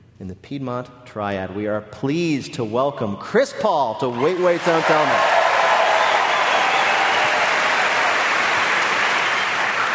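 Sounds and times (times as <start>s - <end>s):
speech: 0.2s - 5.4s
audience applause and cheering: 4.1s - 9.9s.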